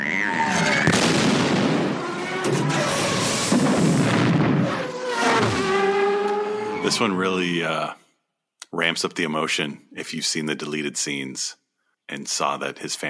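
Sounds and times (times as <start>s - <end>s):
whining engine-like tones: 0.0s - 7.2s
podracer exploding during a race: 0.7s - 4.8s
speech: 6.9s - 8.0s, 8.7s - 13.0s.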